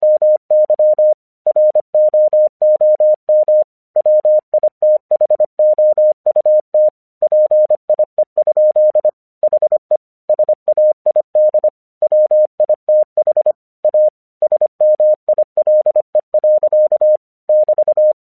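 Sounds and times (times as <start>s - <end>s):
English Morse code at 25 words per minute: 0.0s - 18.2s.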